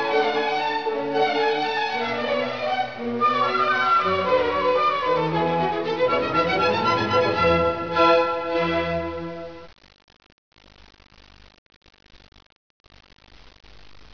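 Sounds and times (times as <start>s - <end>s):
clarinet concerto: 0.0s - 9.6s.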